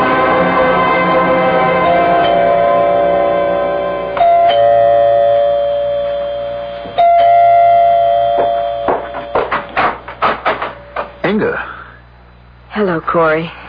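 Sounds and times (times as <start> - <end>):
doorbell ringing: 0.0 - 11.2
speech: 13.2 - 13.6.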